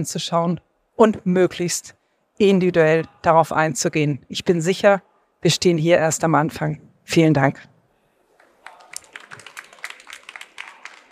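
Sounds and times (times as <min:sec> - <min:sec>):
speech: 0:00.0 - 0:07.7
audience applause: 0:08.4 - 0:11.0.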